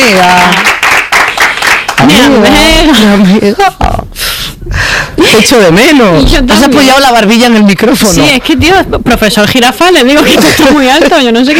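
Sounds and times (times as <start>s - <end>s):
audience clapping: 0.0s - 2.7s
speech: 2.3s - 4.0s, 5.3s - 11.5s.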